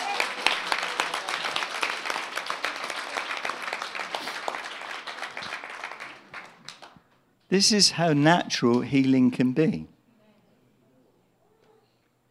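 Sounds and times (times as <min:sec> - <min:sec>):
audience clapping: 0:00.0 - 0:07.1, 0:08.7 - 0:09.3
speech: 0:07.5 - 0:10.0.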